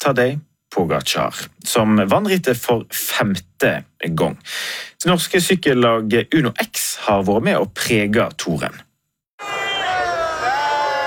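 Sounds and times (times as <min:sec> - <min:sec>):
speech: 0:00.0 - 0:08.9
crowd cheering for the Uno-X cycling team at the Arc de Triomphe in Paris: 0:09.4 - 0:11.0
shouts: 0:09.4 - 0:11.0.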